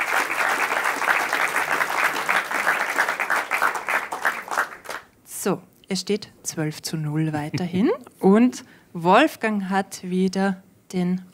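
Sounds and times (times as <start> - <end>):
audience applause: 0.0 - 5.1
speech: 5.4 - 11.3.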